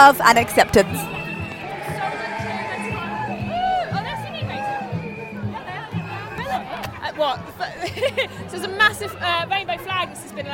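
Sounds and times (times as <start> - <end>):
speech: 0.0 - 1.2, 7.2 - 10.5
babble of many voices: 0.0 - 10.5
street crowd cheering and whooping: 0.4 - 6.9
laughter: 6.4 - 9.4.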